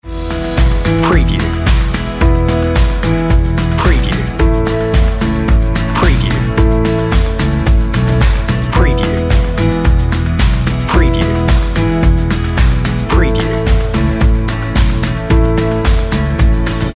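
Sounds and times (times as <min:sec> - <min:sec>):
on hold music: 0:00.0 - 0:16.9.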